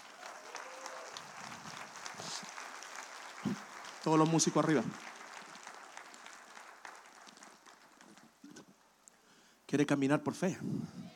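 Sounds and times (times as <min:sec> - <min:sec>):
audience applauding: 0:00.0 - 0:08.9
speech: 0:04.0 - 0:05.1, 0:09.7 - 0:11.0.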